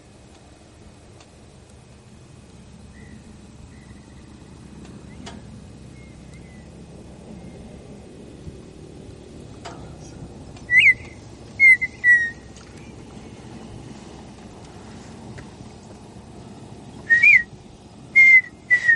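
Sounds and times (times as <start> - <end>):
partridge song phrase of three whistles: 2.9 - 4.4, 5.0 - 6.7, 10.6 - 12.9, 17.0 - 18.9.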